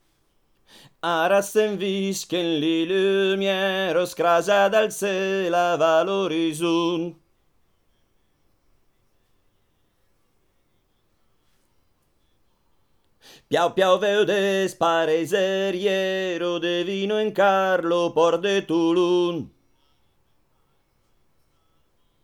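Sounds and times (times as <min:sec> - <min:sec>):
sopranos singing: 0:01.0 - 0:07.2, 0:13.4 - 0:19.6.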